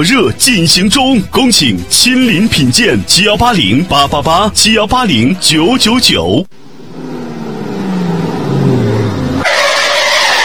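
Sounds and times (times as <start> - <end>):
speech: 0.0 - 6.6
car engine rumbling: 2.9 - 10.4
car tires screeching while braking hard and skidding: 6.8 - 10.4.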